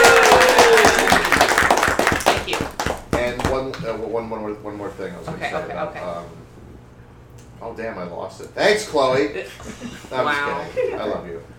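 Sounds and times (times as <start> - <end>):
audience applause: 0.0 - 3.6
speech: 4.2 - 6.4, 7.6 - 11.5
laughter: 5.3 - 6.3, 9.4 - 11.4.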